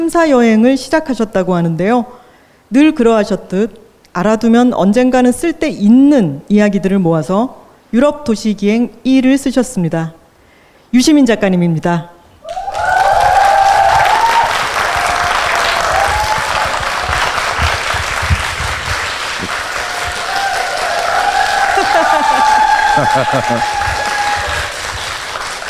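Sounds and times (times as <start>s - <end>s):
speech: 0.0s - 10.2s, 10.9s - 12.6s, 23.0s - 23.8s
live audience applause: 12.4s - 25.6s
laughter: 21.4s - 24.4s.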